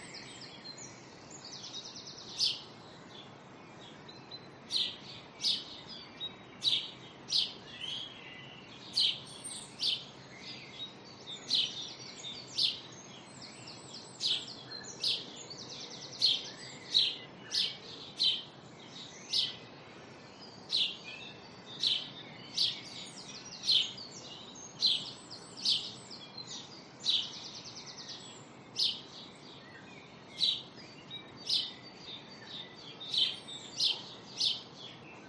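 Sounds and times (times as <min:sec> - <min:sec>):
early morning birds in a residential area: 0:00.0 - 0:35.2.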